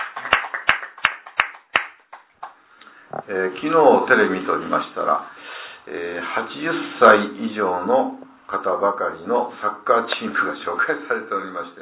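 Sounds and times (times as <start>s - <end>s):
rhythmic applause: 0.0s - 2.6s
speech: 3.3s - 11.8s.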